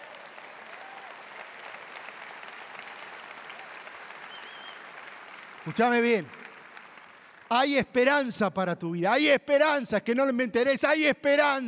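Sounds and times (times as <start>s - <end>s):
audience applause: 0.0s - 7.5s
speech: 5.6s - 6.4s, 7.5s - 11.6s.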